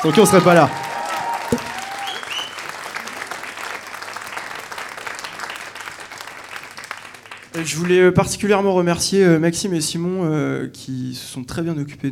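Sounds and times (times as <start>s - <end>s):
speech: 0.0s - 0.9s, 7.6s - 12.1s
audience applause: 0.0s - 7.8s.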